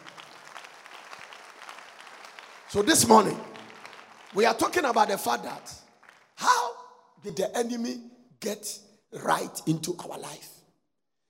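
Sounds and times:
audience clapping: 0.0s - 6.6s
speech: 2.7s - 3.5s, 4.3s - 5.8s, 7.2s - 10.6s.

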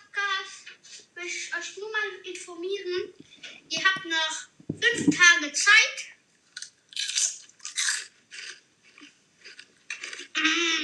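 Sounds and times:
speech: 2.1s - 6.1s
person biting and chewing crisps from a bag: 6.5s - 10.4s.

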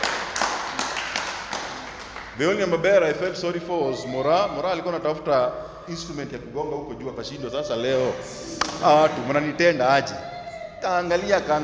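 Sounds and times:
audience clapping: 0.0s - 2.6s
speech: 2.4s - 11.6s.

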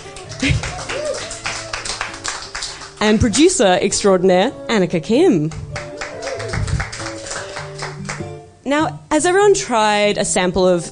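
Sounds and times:
small audience clapping at a wine tasting event: 0.0s - 3.5s, 5.5s - 8.4s
speech: 3.0s - 5.6s, 8.7s - 10.8s.

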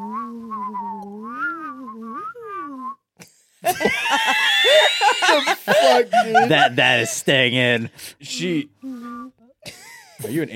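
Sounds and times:
voice imitating the wind with a gliding hum: 0.0s - 3.0s
laughter: 3.6s - 7.9s
speech: 3.7s - 8.8s, 10.2s - 10.5s.

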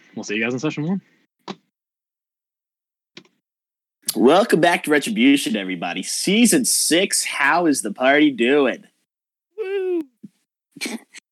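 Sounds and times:
speech: 0.2s - 1.2s, 4.2s - 8.9s, 10.8s - 11.0s
person yawning: 9.6s - 10.2s.

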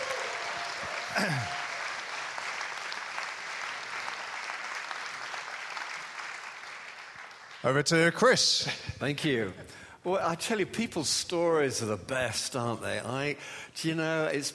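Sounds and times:
audience applause: 0.0s - 7.6s
speech: 1.2s - 1.6s, 7.6s - 14.5s.

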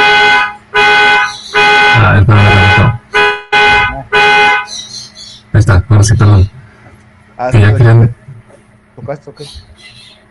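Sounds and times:
car alarm honking: 0.0s - 4.9s
speech: 6.0s - 6.6s, 7.4s - 8.2s, 9.0s - 10.1s.

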